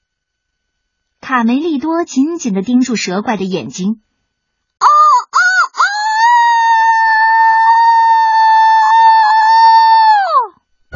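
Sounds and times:
speech: 0:01.3 - 0:04.1
rooster crowing: 0:04.8 - 0:10.5.

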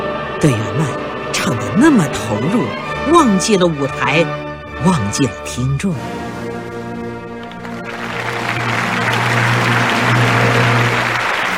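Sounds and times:
speech: 0:00.4 - 0:06.2
warm sustained audience applause: 0:07.4 - 0:11.5.

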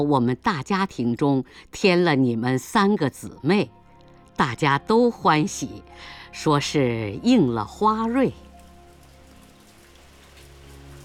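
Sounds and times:
speech: 0:00.0 - 0:03.8, 0:04.4 - 0:08.4
rain pattering on a surface: 0:06.6 - 0:11.0.

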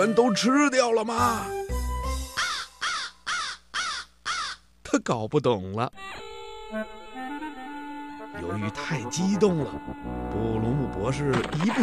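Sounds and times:
speech: 0:00.0 - 0:01.6, 0:05.0 - 0:06.1, 0:06.7 - 0:07.0, 0:08.4 - 0:11.8
small black bird cawing: 0:02.3 - 0:04.7.

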